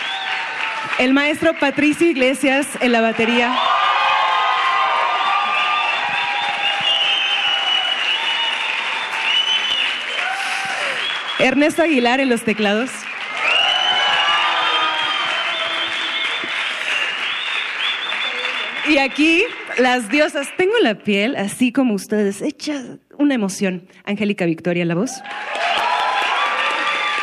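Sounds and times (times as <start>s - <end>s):
audience applause and cheering: 0.0s - 20.7s, 25.2s - 27.2s
speech: 1.0s - 3.8s, 11.4s - 13.0s, 18.9s - 25.6s.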